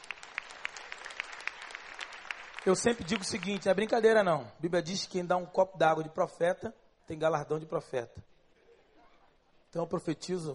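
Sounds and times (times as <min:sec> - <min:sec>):
applause: 0:00.0 - 0:04.0
speech: 0:02.6 - 0:08.3, 0:09.7 - 0:10.5.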